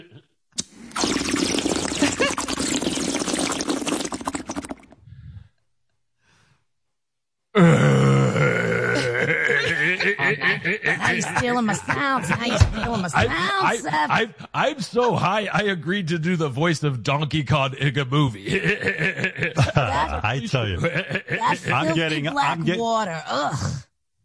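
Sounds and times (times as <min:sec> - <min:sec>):
bong water pipe bubbling: 0:00.6 - 0:05.1
person groaning: 0:07.5 - 0:11.4, 0:18.4 - 0:20.2, 0:20.9 - 0:22.8
laughter: 0:09.0 - 0:15.4, 0:18.4 - 0:22.8
speech: 0:10.6 - 0:24.2.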